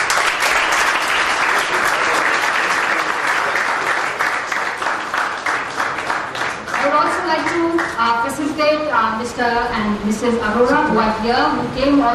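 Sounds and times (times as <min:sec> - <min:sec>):
crowd applause as a memento is presented to a doctor: 0:00.0 - 0:08.0
speech: 0:09.3 - 0:12.1.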